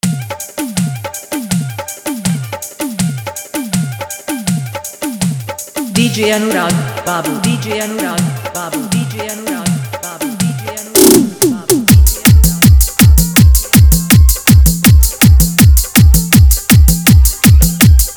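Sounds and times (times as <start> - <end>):
old Bhojpuri song mix with hard dholak and bass: 0.0 - 18.1.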